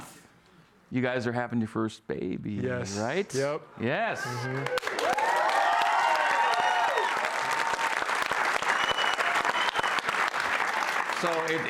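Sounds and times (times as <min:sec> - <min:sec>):
speech: 0:00.9 - 0:05.0, 0:11.2 - 0:11.6
high whooping cheers: 0:04.2 - 0:10.2
crowd applause: 0:04.3 - 0:11.6.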